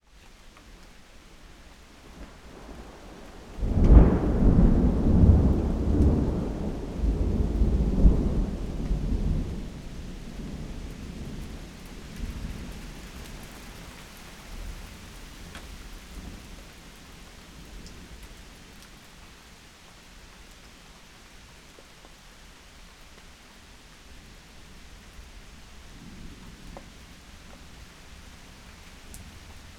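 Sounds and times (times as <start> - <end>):
thunder roll: 2.6 - 11.3.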